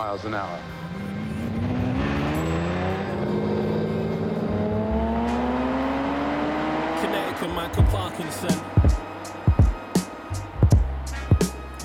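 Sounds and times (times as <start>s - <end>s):
speech: 0.0s - 1.7s, 7.4s - 9.0s
high-speed car engine accelerating hard: 0.0s - 11.8s.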